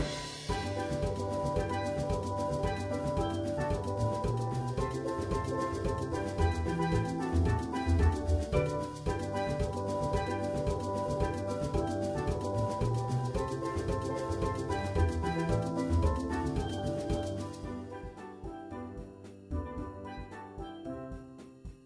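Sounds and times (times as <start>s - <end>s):
steel drums playing a Christmas tune: 0.0s - 20.8s.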